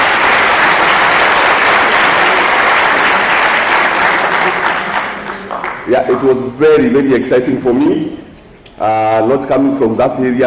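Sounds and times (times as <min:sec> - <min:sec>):
audience applause: 0:00.0 - 0:05.9
speech: 0:05.9 - 0:10.4.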